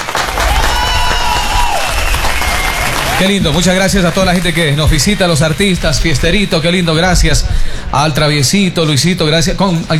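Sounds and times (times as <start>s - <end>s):
audience applause for a performer and his musicians: 0.0s - 5.3s
voices cheering and calling out: 0.0s - 5.3s
speech: 3.2s - 9.9s.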